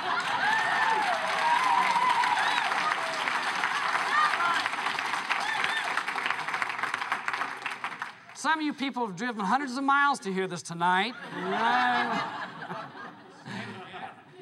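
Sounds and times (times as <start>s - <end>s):
laughter: 0.0s - 1.2s, 11.0s - 14.4s
cheers and shouting voices: 0.0s - 4.8s
loud audience applause: 0.0s - 8.4s
speech: 8.4s - 12.8s.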